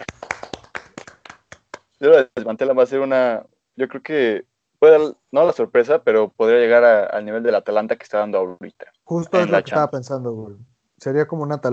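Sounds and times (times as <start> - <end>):
hands clapping: 0.0 - 2.0
speech: 2.0 - 11.7.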